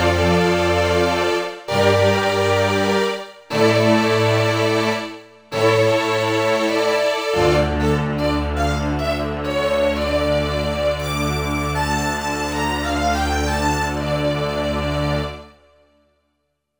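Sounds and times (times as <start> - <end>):
epic string music: 0.0 - 15.6.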